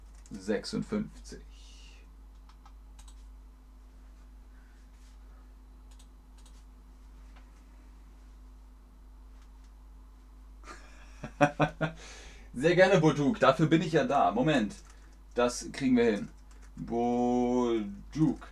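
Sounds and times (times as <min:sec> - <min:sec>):
typing a chat message on a computer keyboard: 0:00.0 - 0:00.4, 0:02.4 - 0:03.2, 0:05.9 - 0:06.6, 0:16.0 - 0:16.8
speech: 0:00.3 - 0:01.7, 0:12.6 - 0:18.5
laughter: 0:10.7 - 0:12.0.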